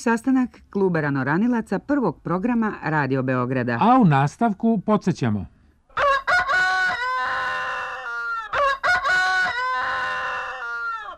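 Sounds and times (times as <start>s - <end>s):
speech: 0.0s - 5.6s
roosters crowing: 5.9s - 11.1s.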